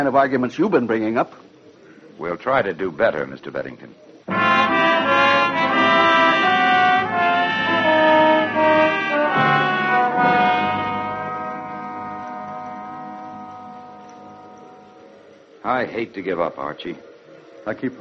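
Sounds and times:
speech: 0.0 - 1.5, 2.2 - 4.5, 15.6 - 17.9
approaching train horn: 4.3 - 15.1.

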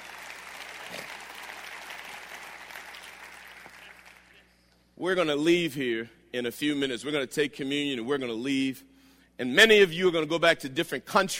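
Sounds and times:
audience hand clapping: 0.0 - 4.5
speech: 5.0 - 11.3.

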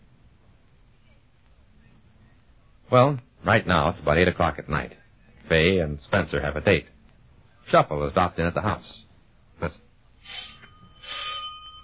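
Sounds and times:
speech: 2.9 - 6.9, 7.6 - 9.0, 9.6 - 10.5
doorbell ringing at the front door: 10.3 - 11.8.

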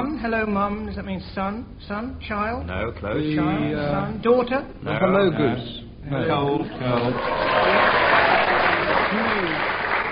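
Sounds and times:
speech: 0.1 - 8.0
round of applause: 7.0 - 10.1.

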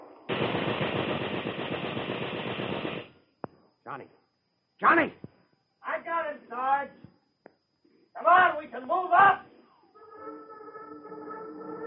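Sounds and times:
machine gun fire aimed at a bush in a war drama: 0.3 - 3.2
speech: 3.9 - 4.2, 4.8 - 5.3, 8.2 - 9.4.

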